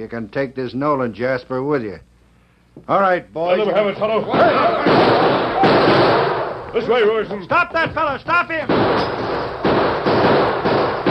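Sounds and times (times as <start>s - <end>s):
speech: 0.0s - 2.1s, 2.8s - 9.2s
volley of loud gunshots: 4.3s - 6.7s, 8.5s - 11.0s.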